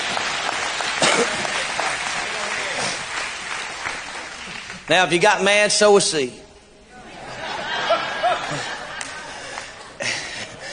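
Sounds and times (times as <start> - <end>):
audience clapping hands: 0.0 - 5.5, 8.2 - 10.2
speech: 4.9 - 6.4
laughter: 6.9 - 10.7.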